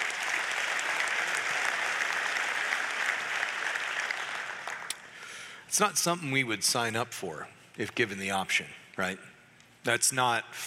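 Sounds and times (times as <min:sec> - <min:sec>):
audience applause: 0:00.0 - 0:05.0
speech: 0:05.7 - 0:10.6.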